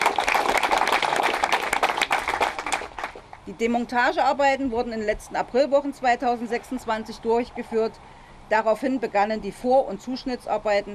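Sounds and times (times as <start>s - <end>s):
applause: 0.0s - 3.4s
speech: 3.5s - 10.9s.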